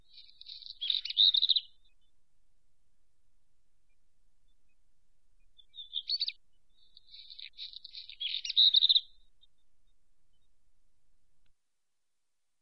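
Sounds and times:
black redstart calling: 0.0s - 2.2s, 5.4s - 10.6s.

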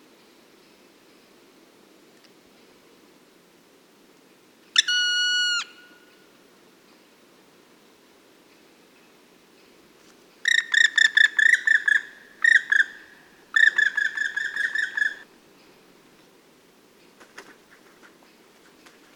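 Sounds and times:
black woodpecker calling: 4.8s - 6.2s, 10.4s - 15.3s.

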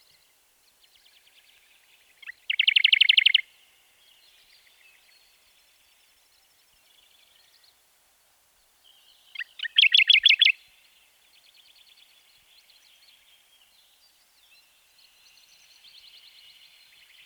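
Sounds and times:
Radde's warbler calling: 2.2s - 3.4s, 9.4s - 10.6s.

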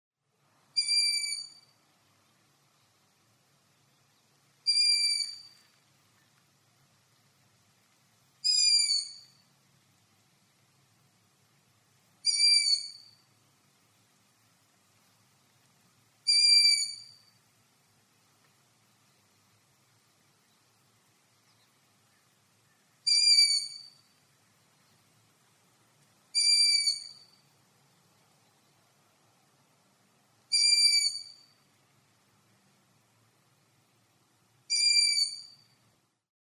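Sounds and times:
long-eared owl calling: 0.8s - 1.7s, 4.6s - 5.7s, 8.4s - 9.4s, 12.2s - 13.2s, 16.2s - 17.3s, 22.1s - 24.1s, 26.3s - 27.4s, 30.5s - 31.6s, 34.7s - 35.7s.

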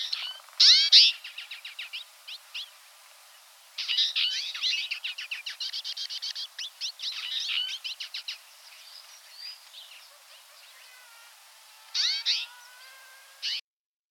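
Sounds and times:
twite calling: 0.0s - 2.8s, 3.8s - 13.6s.

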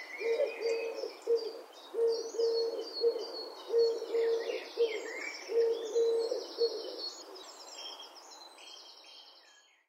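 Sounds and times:
ringed turtle dove calling: 0.0s - 7.4s.

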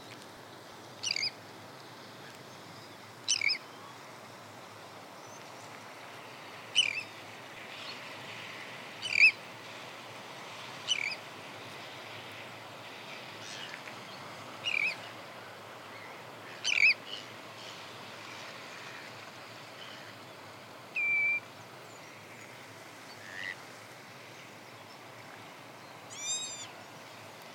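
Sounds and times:
Arctic tern calling: 1.0s - 1.3s, 3.3s - 3.6s, 6.7s - 7.1s, 9.0s - 9.4s, 10.9s - 11.2s, 16.5s - 17.0s, 21.0s - 21.5s, 26.1s - 26.8s.

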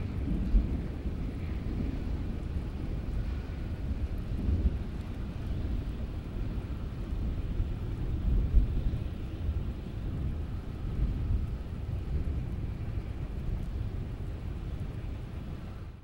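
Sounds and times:
thunderstorm: 0.0s - 16.0s.

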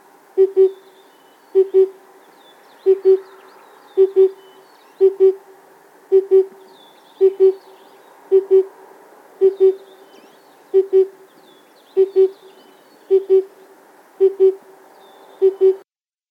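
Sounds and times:
oriental cuckoo calling: 0.4s - 2.0s, 2.8s - 3.3s, 4.0s - 5.4s, 6.1s - 8.7s, 9.4s - 13.6s, 14.2s - 14.7s, 15.4s - 15.9s.

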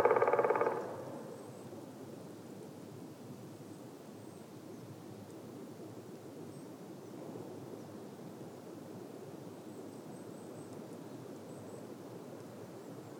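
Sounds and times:
black woodpecker calling: 0.0s - 1.6s.

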